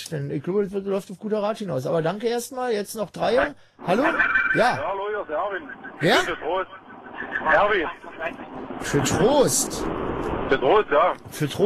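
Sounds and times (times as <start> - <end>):
speech: 0.1 - 11.6
voice through a tinny phone line from inside a Ford car: 3.3 - 9.4.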